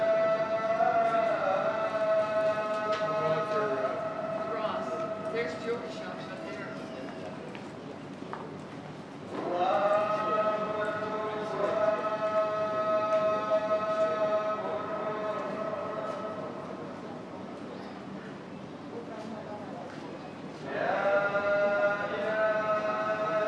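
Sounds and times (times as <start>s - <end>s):
call to prayer: 0.0s - 7.7s, 9.3s - 17.3s, 20.6s - 23.4s.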